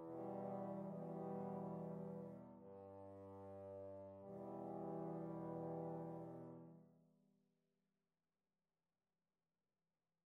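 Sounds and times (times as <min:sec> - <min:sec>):
trombone quartet: 0:00.0 - 0:06.7.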